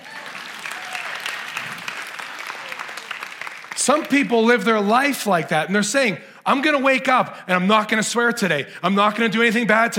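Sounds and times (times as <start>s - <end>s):
audience applause: 0.0s - 4.6s
speech: 3.9s - 9.9s.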